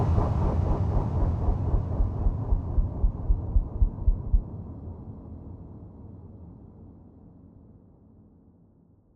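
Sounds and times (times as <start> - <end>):
dark pulse hit burst: 0.2 - 4.4.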